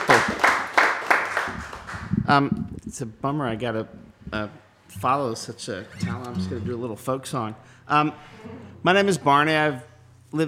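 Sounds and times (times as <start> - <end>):
audience applauding: 0.0 - 2.2
speech: 2.3 - 10.4.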